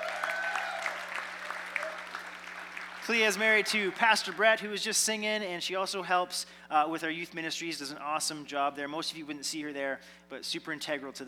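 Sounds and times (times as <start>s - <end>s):
audience applause at a church gathering: 0.0s - 4.6s
speech: 3.1s - 11.2s.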